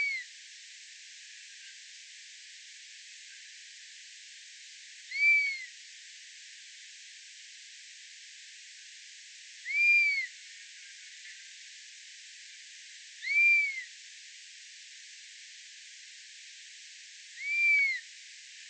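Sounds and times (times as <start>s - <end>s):
buzzard bird songs: 0.0s - 0.2s, 5.1s - 5.7s, 9.7s - 10.3s, 13.2s - 13.8s, 17.4s - 18.0s.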